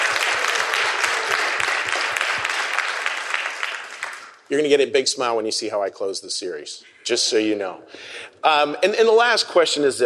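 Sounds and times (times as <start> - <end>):
crowd applause: 0.0 - 4.4
speech: 4.5 - 10.0.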